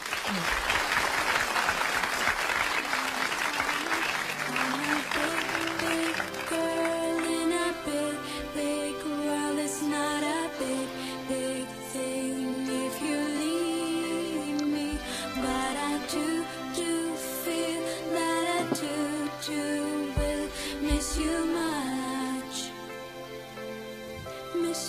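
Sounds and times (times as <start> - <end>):
crowd applause: 0.0 - 7.7
gentle tonal music: 3.1 - 24.8.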